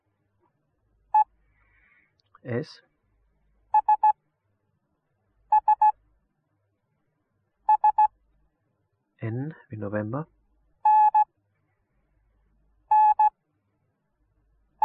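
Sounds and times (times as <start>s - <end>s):
morse code beeps: 3.8s - 4.1s, 5.5s - 5.9s, 7.7s - 8.1s, 10.9s - 11.2s, 12.9s - 13.3s.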